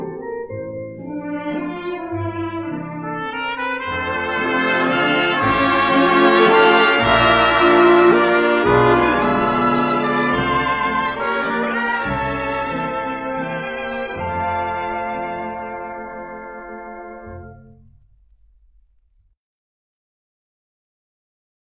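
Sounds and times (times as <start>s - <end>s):
variety orchestra playing: 1.0s - 17.6s.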